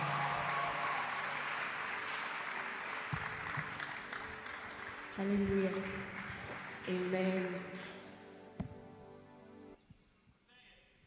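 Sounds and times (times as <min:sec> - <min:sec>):
church congregation clapping hands to welcome a woman: 0:00.0 - 0:08.1
speech: 0:05.2 - 0:07.9.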